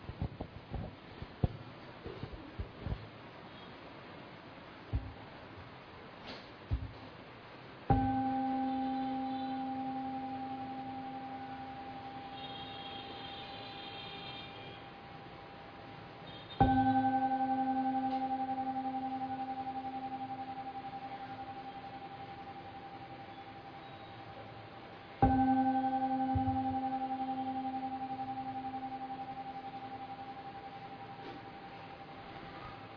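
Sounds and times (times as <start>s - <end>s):
soft taps and rustles: 0.0s - 3.1s, 6.2s - 7.2s
temple bell struck: 7.9s - 14.6s, 16.3s - 32.9s.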